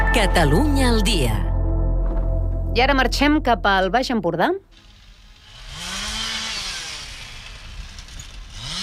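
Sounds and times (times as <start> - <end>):
speech: 0.2 - 1.5, 2.8 - 4.9
chainsaws run by workers cutting roadside trees during emergency works: 4.7 - 8.8.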